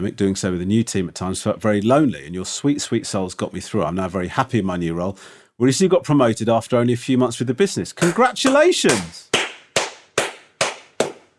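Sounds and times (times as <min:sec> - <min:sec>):
speech: 0:00.0 - 0:09.4
slow clap: 0:08.0 - 0:11.3.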